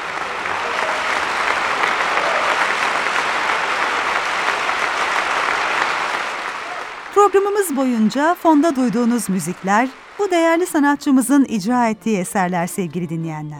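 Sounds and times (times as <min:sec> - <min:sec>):
audience applause: 0:00.0 - 0:12.0
speech: 0:07.3 - 0:13.5.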